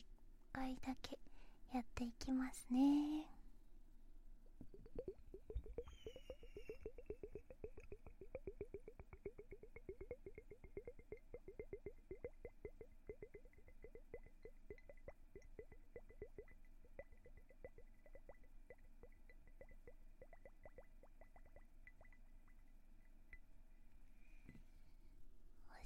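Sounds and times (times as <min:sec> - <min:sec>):
speech: 0:00.6 - 0:03.4
foam bubbling in a glass: 0:04.6 - 0:23.6.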